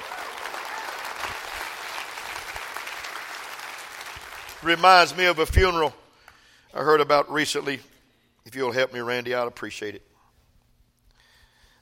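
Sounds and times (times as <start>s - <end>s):
audience clapping hands: 0.0s - 5.4s
speech: 4.6s - 6.0s, 6.7s - 10.1s.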